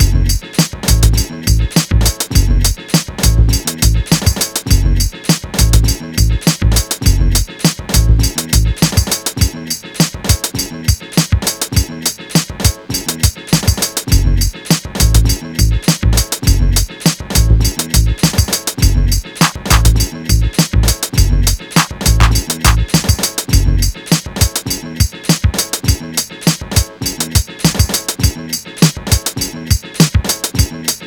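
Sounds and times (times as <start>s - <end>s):
pick up beat: 0.0s - 31.0s.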